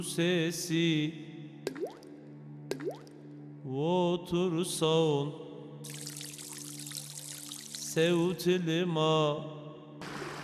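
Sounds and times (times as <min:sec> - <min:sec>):
speech: 0:00.0 - 0:01.9, 0:03.7 - 0:06.0, 0:08.0 - 0:09.6
water pouring: 0:05.8 - 0:08.2.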